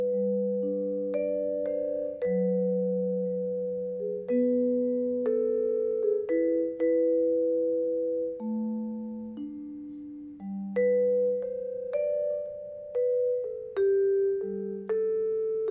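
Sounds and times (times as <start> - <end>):
vibraphone melody: 0.0 - 15.6.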